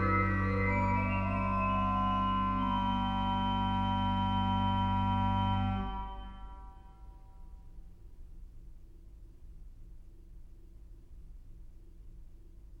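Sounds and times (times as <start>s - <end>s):
organ chorale prelude: 0.0s - 6.8s.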